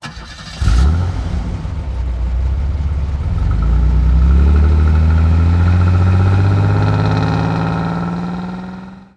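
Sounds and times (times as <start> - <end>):
car: 0.0 - 9.1.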